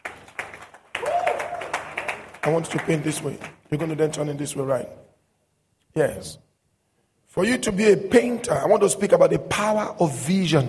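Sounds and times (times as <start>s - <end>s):
audience clapping: 0.0s - 4.1s
speech: 2.4s - 5.0s, 6.0s - 6.4s, 7.4s - 10.6s.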